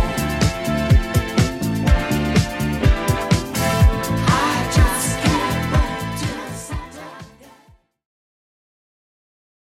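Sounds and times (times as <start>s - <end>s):
clean 70s drum loop: 0.0s - 7.4s.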